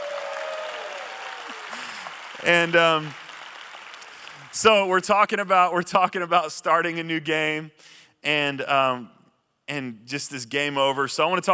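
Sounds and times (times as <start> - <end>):
audience applause at a church gathering: 0.0 - 4.9
speech: 2.4 - 3.2, 4.5 - 11.5.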